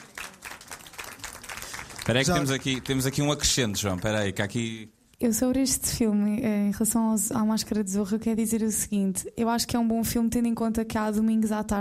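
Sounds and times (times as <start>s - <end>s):
applause: 0.0s - 4.7s
speech: 2.1s - 11.7s.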